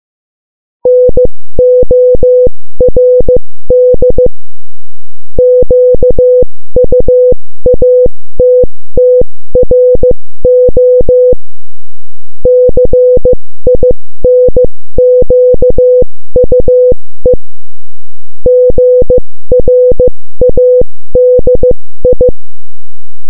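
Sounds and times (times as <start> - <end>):
morse code beeps: 0.9 - 4.3, 5.4 - 11.4, 12.5 - 17.0, 18.5 - 22.3.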